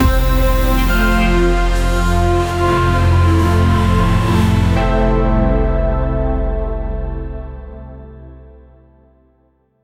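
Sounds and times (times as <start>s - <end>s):
exciting cinematic intro build-up music: 0.0s - 7.2s.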